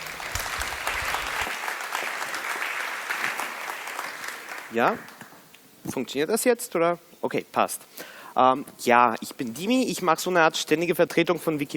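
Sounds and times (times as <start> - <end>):
audience applause: 0.0 - 5.3
speech: 4.7 - 5.1, 5.8 - 11.7.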